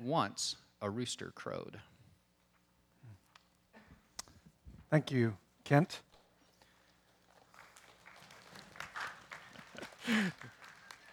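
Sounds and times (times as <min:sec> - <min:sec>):
speech: 0:00.0 - 0:01.9, 0:04.9 - 0:06.1, 0:10.0 - 0:10.6
scattered obligatory clapping from audience: 0:07.2 - 0:11.1.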